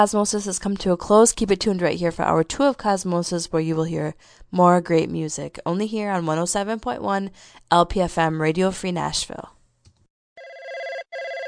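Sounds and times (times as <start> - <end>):
speech: 0.0 - 9.6
telephone ringing before answering machine: 10.4 - 11.4.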